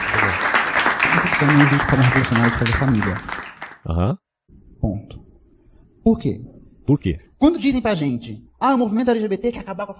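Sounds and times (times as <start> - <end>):
round of applause: 0.0 - 3.8
speech: 1.4 - 4.2, 4.8 - 5.2, 6.0 - 9.9.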